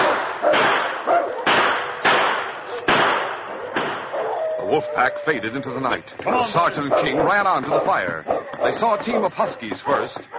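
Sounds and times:
gunshot blasts: 0.0 - 4.2
speech: 4.7 - 10.3.

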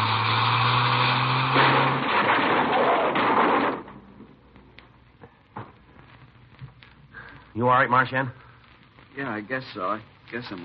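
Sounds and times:
droning car engine: 0.0 - 2.2
car crash crunching and roaring noise: 0.0 - 4.7
settling debris rattling and clicking: 1.6 - 4.3
speech: 7.6 - 8.4, 9.2 - 10.6.

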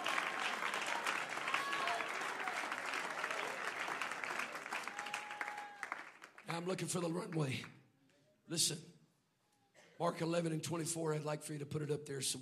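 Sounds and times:
audience clapping hands: 0.0 - 7.6
speech: 6.5 - 7.8, 8.5 - 9.0, 10.0 - 12.4.

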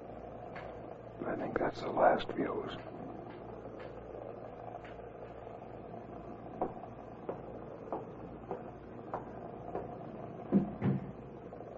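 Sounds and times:
speech: 1.2 - 3.0
heavy storeroom door thuds: 10.5 - 11.2.

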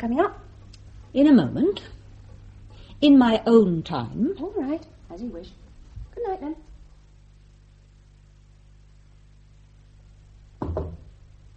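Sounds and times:
speech: 0.0 - 0.4, 1.1 - 2.0, 3.0 - 5.6, 6.2 - 6.7
knocks on a door: 10.6 - 11.5.

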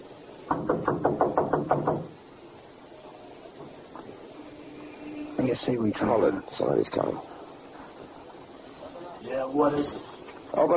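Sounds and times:
knocking on a door: 0.5 - 2.2
speech: 5.6 - 7.4, 9.5 - 10.7.

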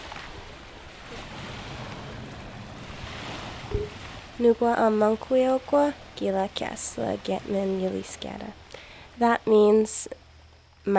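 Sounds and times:
ocean waves: 0.0 - 9.6
speech: 3.8 - 8.6, 9.2 - 10.2.

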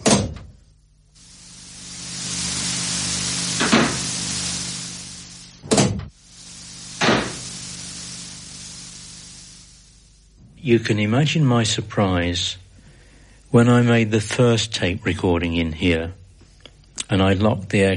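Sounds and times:
mechanical whirring of a seat being adjusted inside an aircraft: 1.2 - 10.4
speech: 10.6 - 12.6, 13.5 - 16.2, 17.1 - 17.9.

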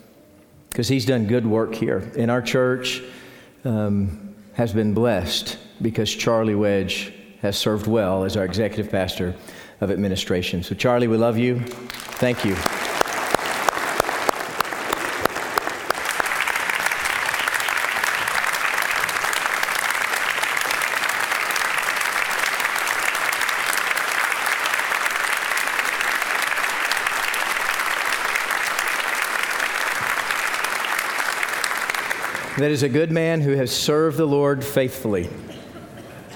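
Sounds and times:
speech: 0.8 - 12.8, 32.6 - 35.5
audience applauding: 11.7 - 32.8.

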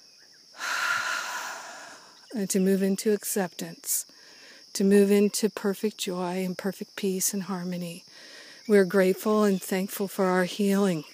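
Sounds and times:
deep breath taken together by a group during a guided healing meditation: 0.6 - 2.2, 8.1 - 8.7
speech: 2.3 - 4.2, 4.8 - 8.1, 8.7 - 11.1.

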